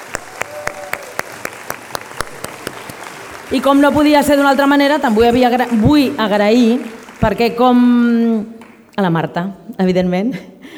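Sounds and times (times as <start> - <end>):
audience applause: 0.0 - 8.0
speech: 3.5 - 10.5.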